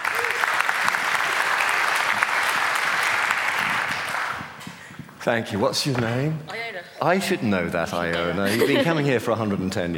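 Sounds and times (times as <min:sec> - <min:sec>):
audience applause: 0:00.0 - 0:04.6
speech: 0:05.2 - 0:09.9.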